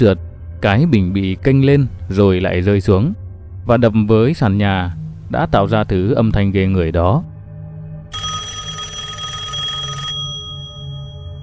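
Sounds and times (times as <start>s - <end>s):
speech: 0.0s - 7.3s
telephone ringing: 8.1s - 11.4s.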